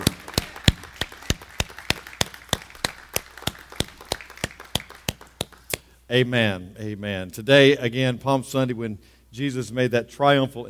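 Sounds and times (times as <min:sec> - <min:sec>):
audience applause: 0:00.0 - 0:05.1
speech: 0:06.1 - 0:10.6.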